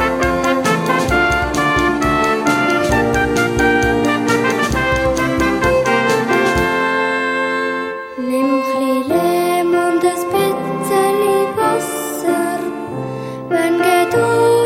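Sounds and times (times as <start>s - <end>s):
drum kit: 0.0s - 7.3s
flugelhorn: 0.0s - 12.9s
piano: 0.0s - 14.6s
violin: 0.0s - 14.6s.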